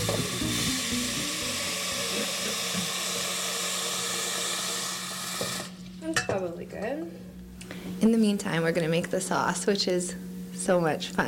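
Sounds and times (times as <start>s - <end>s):
water running into a pot to boil for pasta: 0.0s - 5.8s
speech: 6.2s - 11.2s.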